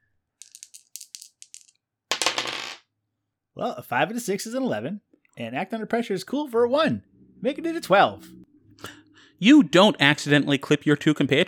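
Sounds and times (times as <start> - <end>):
dice being rolled, rattling and clattering: 0.4 - 2.8
speech: 3.6 - 8.4, 9.4 - 11.4.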